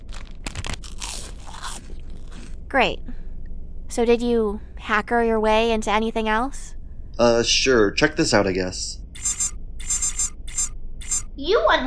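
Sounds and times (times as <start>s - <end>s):
person crunching on a granola bar: 0.0s - 2.6s
speech: 2.7s - 3.2s, 3.9s - 6.6s, 7.2s - 9.4s, 11.4s - 11.8s.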